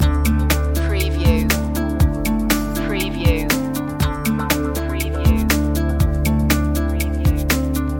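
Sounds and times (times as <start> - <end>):
chill floating guitars loop: 0.0 - 7.9.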